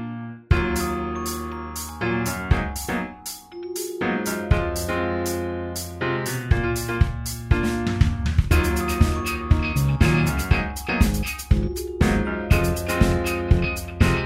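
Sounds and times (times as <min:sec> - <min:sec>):
funk music: 0:00.5 - 0:14.2.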